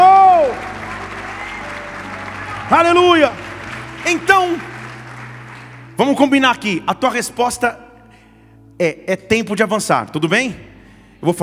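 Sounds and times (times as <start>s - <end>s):
audience applauding: 0.0s - 7.2s
speech: 2.7s - 3.4s, 4.0s - 4.7s, 6.0s - 7.8s, 8.8s - 11.4s.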